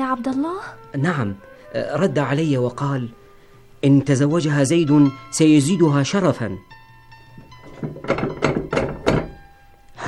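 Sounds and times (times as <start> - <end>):
speech: 0.1 - 3.2, 3.8 - 6.8, 7.8 - 8.3
knocking on a door: 7.6 - 9.4.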